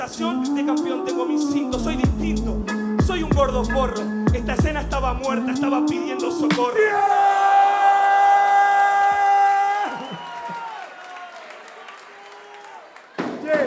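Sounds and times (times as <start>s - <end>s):
speech: 0.0s - 7.4s
loud sustained whoop: 6.7s - 11.4s
audience applauding: 8.4s - 13.6s.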